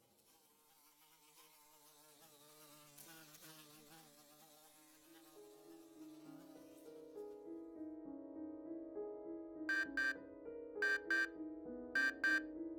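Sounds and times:
alarm ringing with a steady electronic melody: 9.7s - 10.2s, 10.8s - 11.3s, 12.0s - 12.4s
sharp buzzing bursts: 9.7s - 10.2s, 10.8s - 11.3s, 12.0s - 12.4s.

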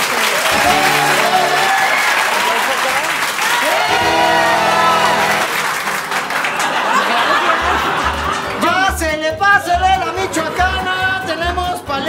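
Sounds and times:
audience applause: 0.0s - 8.9s
cheers and laughter: 0.1s - 8.9s, 10.0s - 11.9s.

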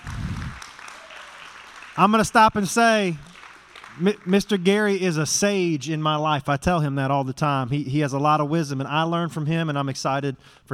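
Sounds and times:
audience applause: 0.0s - 4.7s
speech: 2.0s - 3.3s, 4.0s - 10.7s.

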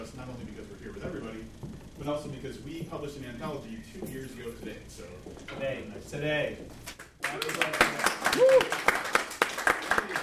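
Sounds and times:
speech: 2.0s - 8.7s
audience applause: 7.2s - 10.2s.

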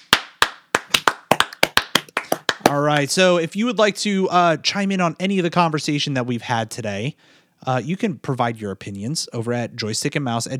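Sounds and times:
hosts clapping hands: 0.0s - 3.1s
speech: 2.7s - 10.5s.

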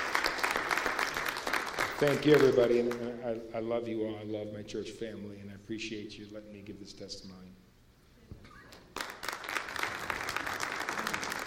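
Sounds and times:
audience applause: 0.0s - 3.1s, 8.9s - 11.4s
speech: 2.0s - 7.6s.

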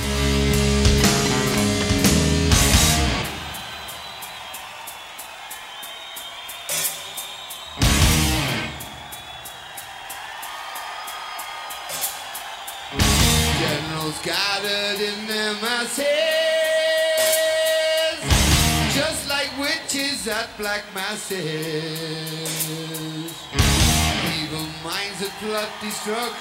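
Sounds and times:
heavy metal song: 0.0s - 3.6s, 7.8s - 8.8s, 12.9s - 25.0s
speech: 20.4s - 23.0s, 24.6s - 26.3s.

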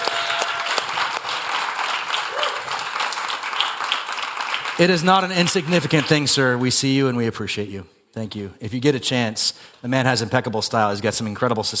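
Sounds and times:
audience applause: 0.0s - 6.4s
speech: 4.8s - 11.7s.

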